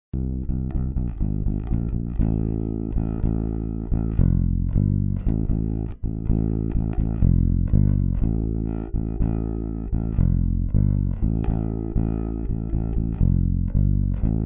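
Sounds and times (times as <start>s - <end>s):
bass: 0.0s - 14.4s.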